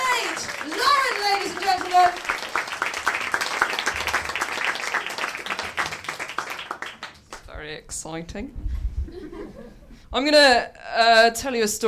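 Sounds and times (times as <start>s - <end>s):
audience applause: 0.0s - 7.4s
speech: 8.0s - 11.8s
laughter: 9.1s - 10.0s.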